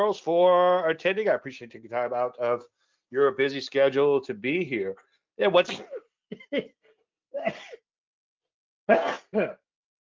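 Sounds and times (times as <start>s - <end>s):
speech: 0.0s - 7.8s, 8.9s - 9.6s
adult sneezing: 8.9s - 9.5s.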